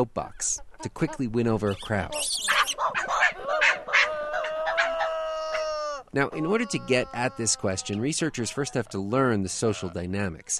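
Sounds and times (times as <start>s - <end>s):
speech: 0.0s - 2.6s, 6.1s - 10.5s
gelada monkey calls: 1.6s - 8.9s.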